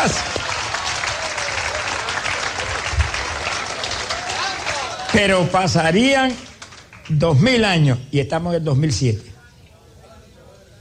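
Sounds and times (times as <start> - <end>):
speech: 0.0 - 0.4, 5.2 - 6.5, 7.1 - 9.3
audience applause: 0.0 - 7.5.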